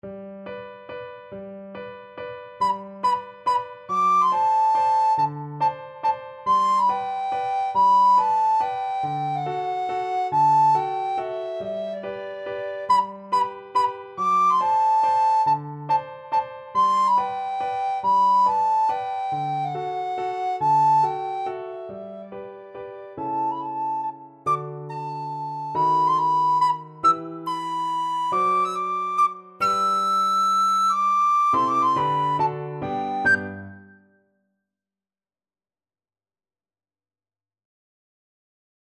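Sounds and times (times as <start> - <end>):
recorder playing an opera aria: 2.6 - 22.4, 23.2 - 34.0.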